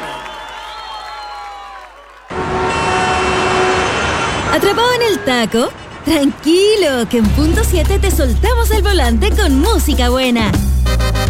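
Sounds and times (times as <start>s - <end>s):
audience applause: 0.0s - 8.8s
audience cheering: 0.0s - 10.4s
speech: 4.6s - 10.7s.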